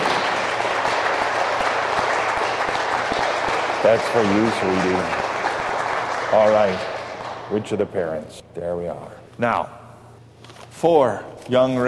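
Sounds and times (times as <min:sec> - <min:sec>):
audience applause for a baby: 0:00.0 - 0:07.8
speech: 0:03.8 - 0:05.2, 0:06.3 - 0:06.9, 0:07.5 - 0:09.8, 0:10.8 - 0:11.8.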